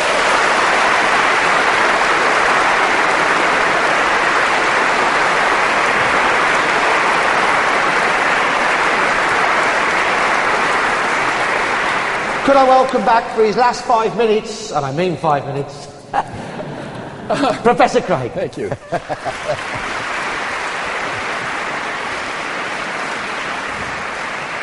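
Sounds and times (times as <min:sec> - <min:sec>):
audience applause: 0:00.0 - 0:15.1, 0:16.6 - 0:24.6
speech: 0:12.5 - 0:16.3, 0:17.3 - 0:20.1
laughter: 0:16.1 - 0:21.8.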